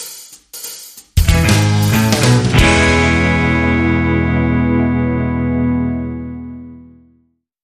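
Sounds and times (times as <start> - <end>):
jazz music: 1.1 - 7.0.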